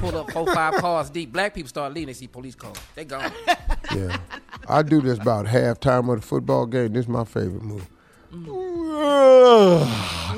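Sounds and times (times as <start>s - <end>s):
laughter: 0.0s - 1.2s, 3.1s - 5.6s
speech: 0.0s - 10.3s
big yawn: 8.3s - 10.3s.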